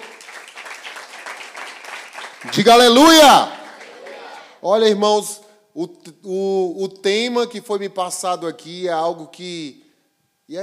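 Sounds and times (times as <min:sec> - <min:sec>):
audience applauding: 0:00.0 - 0:04.6
speech: 0:02.4 - 0:03.6, 0:04.6 - 0:09.8, 0:10.5 - 0:10.6.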